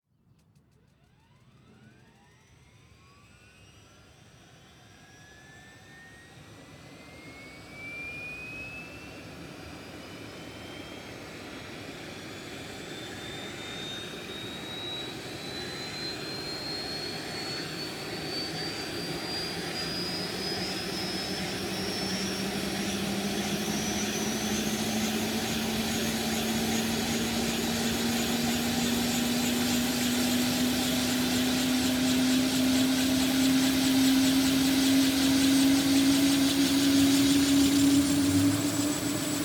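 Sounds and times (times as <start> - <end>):
helicopter engine starting up: 0.4 - 39.4
helicopter rotors starting: 18.0 - 39.4.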